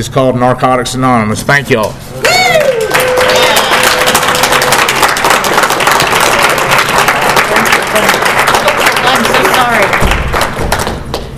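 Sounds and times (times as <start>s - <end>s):
speech: 0.0s - 2.6s
audience applause: 2.2s - 11.2s.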